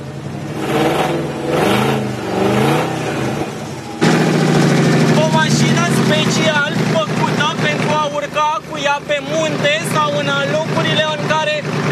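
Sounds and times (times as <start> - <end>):
off-road car engine starting and revving: 0.0 - 11.9.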